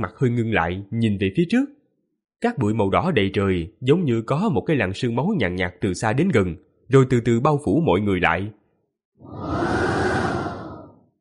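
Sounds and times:
speech: 0.0 - 1.8, 2.4 - 8.6, 9.2 - 9.8
howling gust of wind: 9.2 - 11.2.

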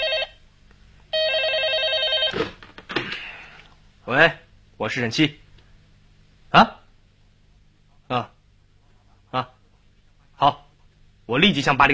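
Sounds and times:
telephone bell ringing in a criminal investigation office: 0.0 - 0.4, 1.1 - 2.5
speech: 4.1 - 5.4, 6.5 - 6.8, 8.1 - 8.3, 9.3 - 9.6, 10.4 - 10.6, 11.3 - 11.9.

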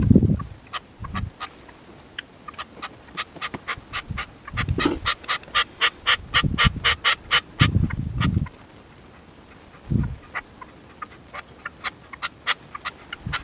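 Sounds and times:
partridge or tinamou song: 0.1 - 13.4.

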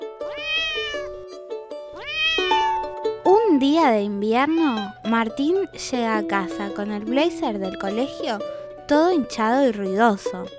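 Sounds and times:
kitten meowing: 0.3 - 3.0, 4.5 - 5.0
speech: 3.6 - 10.5.

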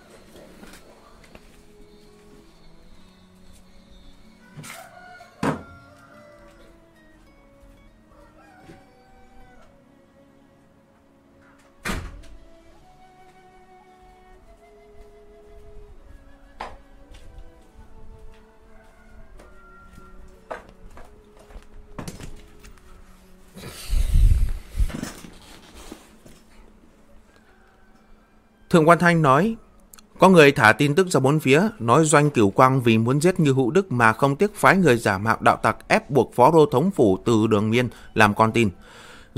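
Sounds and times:
noise with tonal calls: 0.0 - 39.3
door thumping shut against loud outside noise: 5.4 - 5.7, 11.8 - 12.4
speech: 28.7 - 29.6, 30.2 - 39.3.

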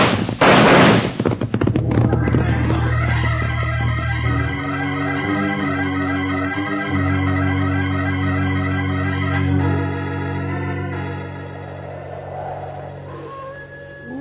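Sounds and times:
signal gunshot fired to call riders in during a raid: 0.0 - 1.2
dramatic orchestral music: 2.0 - 14.1.

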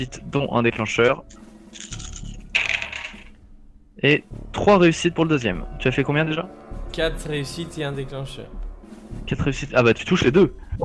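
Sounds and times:
speech: 0.0 - 2.0, 4.0 - 8.6, 9.2 - 10.8
dice being rolled: 1.8 - 3.4.

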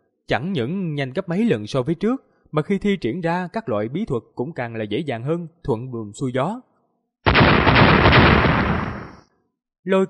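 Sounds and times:
speech: 0.3 - 6.7, 9.8 - 10.0
thunderous explosion sound effect: 7.3 - 9.2.

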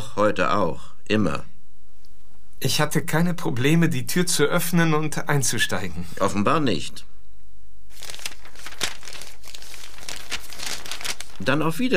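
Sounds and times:
speech: 0.2 - 1.5, 2.6 - 7.1, 11.4 - 11.9
newspaper pages rustling and crinkling: 7.9 - 11.7.

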